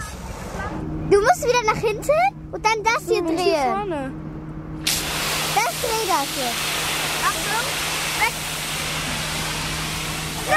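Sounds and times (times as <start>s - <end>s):
speech: 1.1s - 4.2s, 5.8s - 6.8s
water rushing from a large heavy fire brigade hose: 4.8s - 10.5s.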